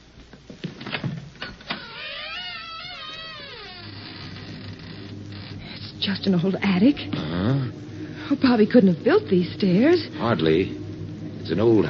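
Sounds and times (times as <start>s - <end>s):
low steady hum: 0.0s - 11.8s
old door hinges creaking: 0.8s - 6.2s
speech: 6.0s - 10.8s, 11.5s - 11.8s.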